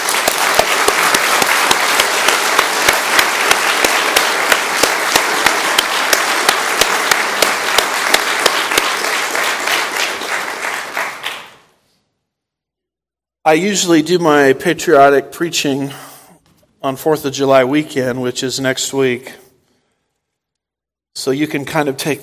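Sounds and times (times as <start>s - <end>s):
audience applauding: 0.0s - 11.7s
speech: 13.5s - 16.1s, 16.8s - 19.4s, 21.2s - 22.2s.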